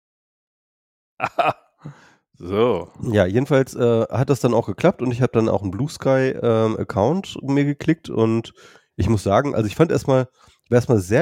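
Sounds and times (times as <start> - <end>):
person coughing: 1.2 - 2.0
speech: 1.2 - 11.1.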